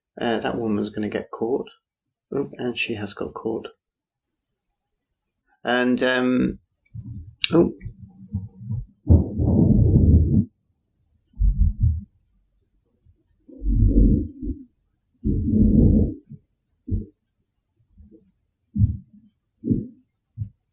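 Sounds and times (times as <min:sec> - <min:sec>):
speech: 0:00.2 - 0:03.8, 0:05.6 - 0:08.0
thunder rumbling during a thunderstorm: 0:07.0 - 0:10.5, 0:11.4 - 0:12.0, 0:13.6 - 0:14.6, 0:15.2 - 0:16.2.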